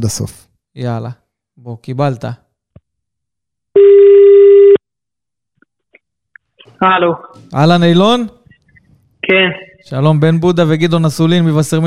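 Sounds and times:
speech: 0.0 - 2.4, 6.8 - 8.4, 9.3 - 11.8
telephone ringback tone on an outgoing call: 3.8 - 4.8.

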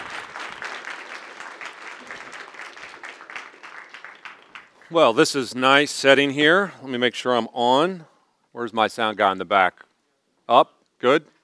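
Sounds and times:
audience applause welcoming a lecturer on the Gospels: 0.0 - 5.1
speech: 4.9 - 9.8, 10.5 - 11.3.

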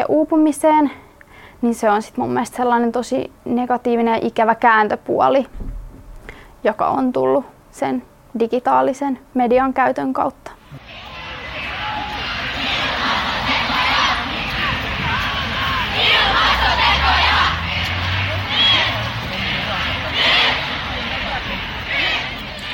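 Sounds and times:
speech: 0.1 - 5.8, 6.6 - 11.1
low rumble of traffic: 5.4 - 7.7, 10.6 - 22.7
youth climate strike crowd chanting: 10.7 - 22.7.

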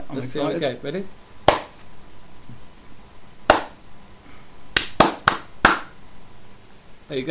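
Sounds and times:
speech: 0.1 - 1.2
heavy weighted hand claps: 1.4 - 1.8, 3.5 - 3.8, 4.8 - 6.0.

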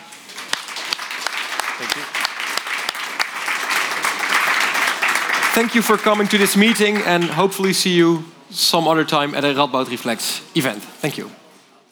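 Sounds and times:
audience applause: 0.0 - 8.2
speech: 1.8 - 2.2, 5.6 - 11.4.

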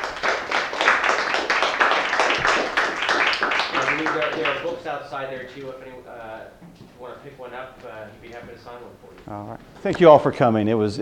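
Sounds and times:
audience applause: 0.0 - 4.8
speech: 4.6 - 10.9.

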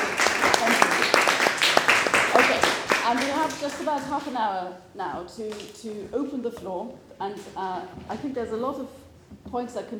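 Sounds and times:
audience applause: 0.0 - 4.3
speech: 3.1 - 9.9.

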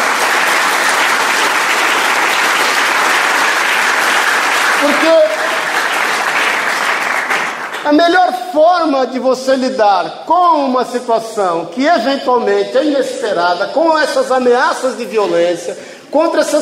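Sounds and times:
applause: 0.0 - 8.2
speech: 7.9 - 16.6.

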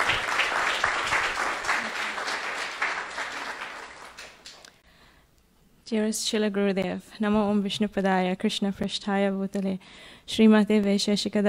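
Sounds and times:
crowd applause: 0.0 - 4.7
speech: 5.9 - 11.4.

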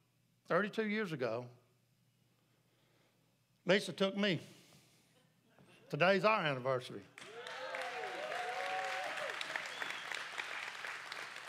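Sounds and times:
speech: 0.5 - 1.6, 3.7 - 4.6, 5.9 - 7.3
cheers and whoops: 7.2 - 10.4
audience applause: 7.2 - 11.4.

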